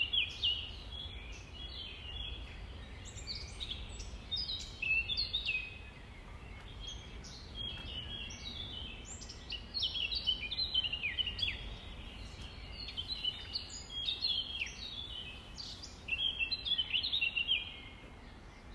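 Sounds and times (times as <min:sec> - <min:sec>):
dawn chorus: 0:00.0 - 0:18.7
nightingale singing: 0:00.0 - 0:18.7.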